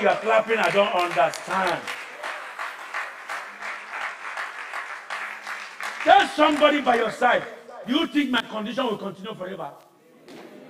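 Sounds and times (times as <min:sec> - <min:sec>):
speech: 0:00.0 - 0:02.0, 0:06.0 - 0:09.8
audience clapping: 0:00.0 - 0:07.7.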